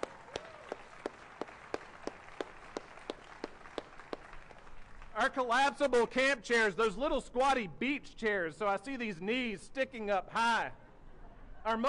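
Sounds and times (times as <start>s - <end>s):
audience applause: 0.0s - 5.1s
speech: 5.2s - 10.8s, 11.6s - 11.8s.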